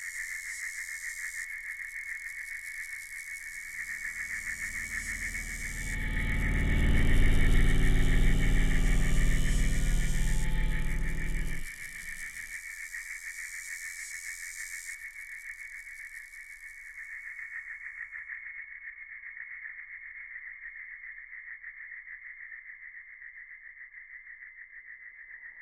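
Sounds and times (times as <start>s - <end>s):
cicada buzzing at highest intensity: 0.0s - 16.7s.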